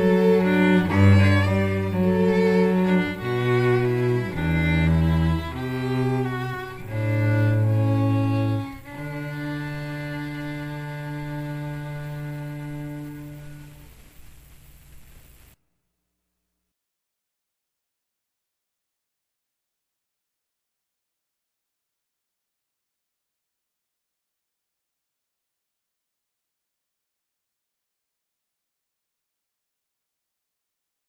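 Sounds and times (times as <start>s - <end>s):
strings: 0.0s - 14.1s.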